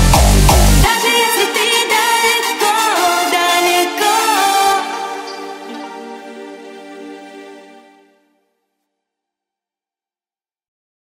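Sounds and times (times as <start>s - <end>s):
hardstyle remix: 0.0s - 8.1s.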